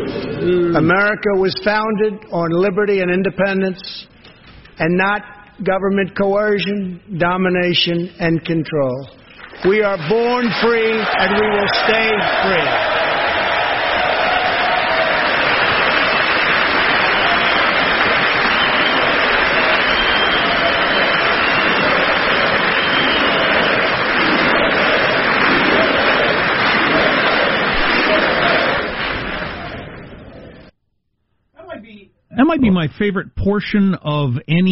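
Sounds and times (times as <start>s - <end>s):
speech: 0.4s - 4.1s, 4.8s - 13.0s, 32.5s - 34.7s
sustained applause after speech line: 9.3s - 30.7s.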